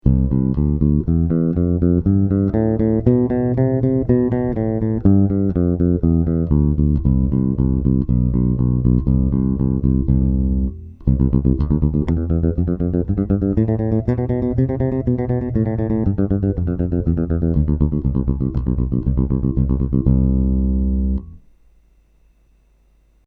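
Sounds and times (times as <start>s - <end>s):
bass: 0.0s - 21.6s.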